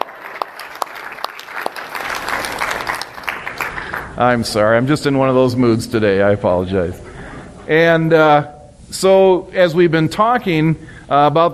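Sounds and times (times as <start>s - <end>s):
audience applause: 0.0s - 4.2s
speech: 4.2s - 7.0s, 7.7s - 11.5s.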